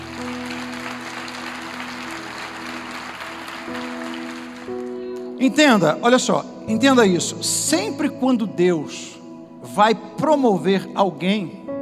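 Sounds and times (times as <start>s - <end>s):
audience applause: 0.0s - 5.0s
speech: 5.4s - 9.1s, 9.8s - 11.6s.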